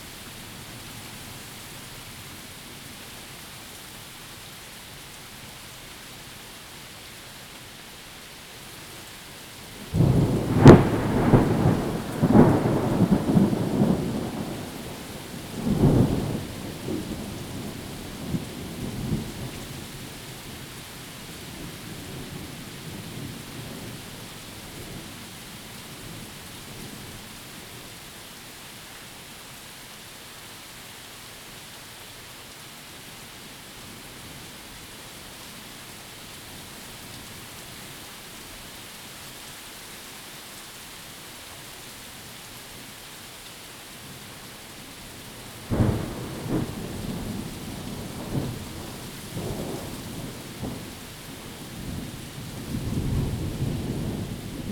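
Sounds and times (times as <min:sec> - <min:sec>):
thunderstorm: 0:09.8 - 0:19.9, 0:45.5 - 0:54.7.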